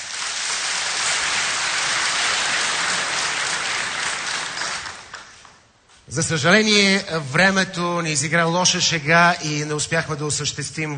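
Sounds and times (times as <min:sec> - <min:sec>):
audience applause: 0:00.0 - 0:05.6
speech: 0:06.1 - 0:10.9.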